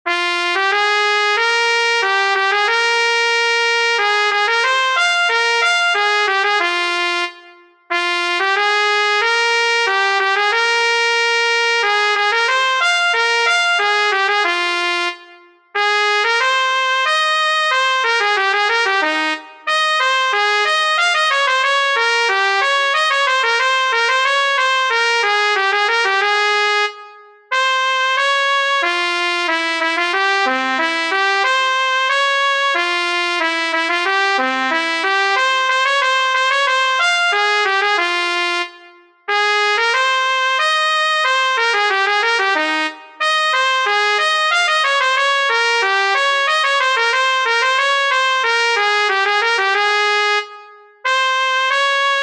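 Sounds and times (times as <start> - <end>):
trumpet playing a polonaise: 0.1 - 52.2.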